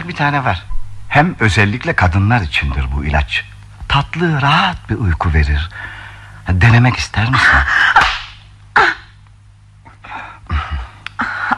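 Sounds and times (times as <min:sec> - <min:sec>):
speech: 0:00.1 - 0:08.1
slap across the face: 0:07.9 - 0:08.5.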